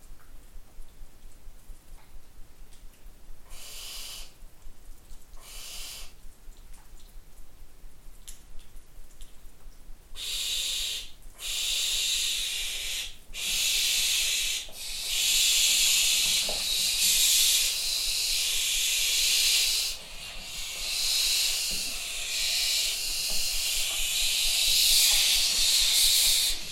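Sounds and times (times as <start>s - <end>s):
young barn owls in the nest: 3.5s - 4.4s, 5.4s - 6.2s, 10.1s - 26.7s.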